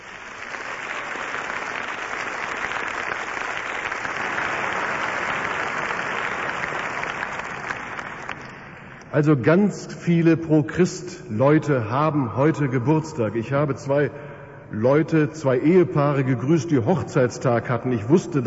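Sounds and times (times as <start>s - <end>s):
strong audience applause: 0.0s - 9.0s
speech: 9.2s - 18.4s.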